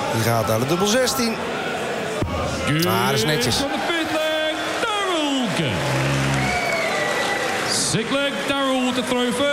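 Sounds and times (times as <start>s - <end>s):
speech: 0.1s - 1.6s, 2.5s - 3.9s, 5.6s - 6.0s, 7.9s - 9.5s
applause at darts match: 3.5s - 9.5s.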